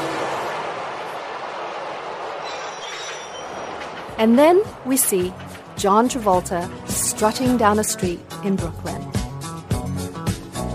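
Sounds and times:
subway train running on its rails: 0.0 - 8.2
metallic wheel squeal: 2.4 - 4.2
speech: 4.2 - 9.2.

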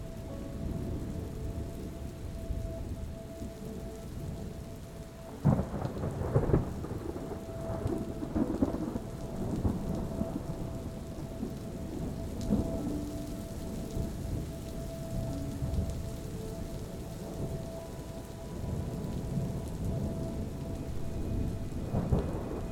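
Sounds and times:
relaxing music: 0.0 - 22.7
thunder: 5.3 - 22.7.

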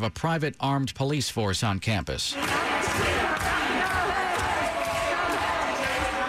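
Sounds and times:
speech: 0.0 - 3.6
crowd of protesters chanting: 2.3 - 6.2.

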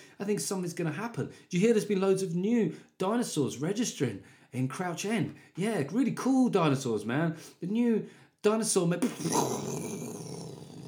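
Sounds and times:
speech: 0.2 - 10.2
vocal explosion imitation: 9.0 - 10.8.

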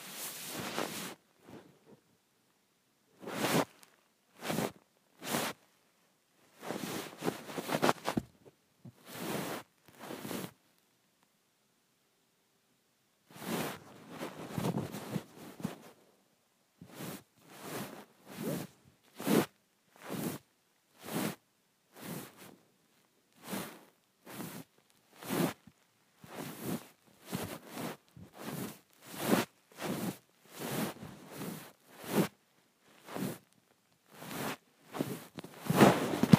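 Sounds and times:
phone sliding across bedsheets: 0.0 - 1.6, 3.2 - 3.8, 6.6 - 8.2, 9.0 - 10.6, 13.3 - 16.0, 16.8 - 20.4, 21.0 - 21.4, 22.0 - 22.5, 23.4 - 25.6, 26.2 - 32.4, 33.0 - 33.5, 34.1 - 36.3.

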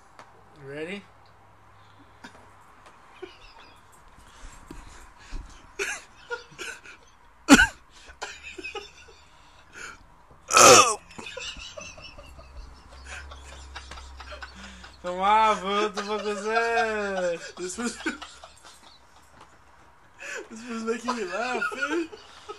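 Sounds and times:
speech: 0.6 - 1.2, 17.4 - 18.3, 21.1 - 22.3
laughter: 3.2 - 3.8, 5.8 - 9.9, 11.1 - 22.5
loud raspy burp: 10.5 - 11.0.

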